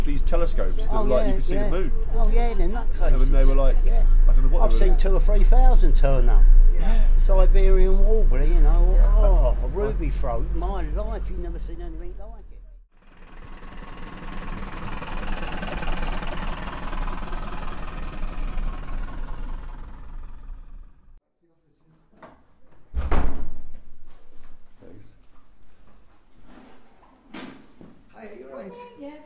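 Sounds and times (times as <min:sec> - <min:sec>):
old bus engine idling: 0:00.0 - 0:21.2
speech: 0:00.1 - 0:12.5
door shutting with a heavy thud: 0:22.2 - 0:23.9.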